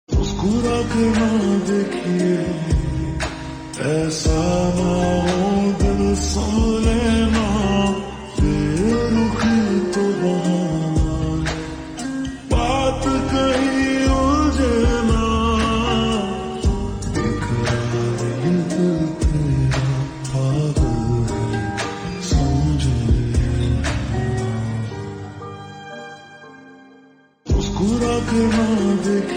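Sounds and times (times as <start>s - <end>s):
slowed reverb music: 0.1s - 29.3s.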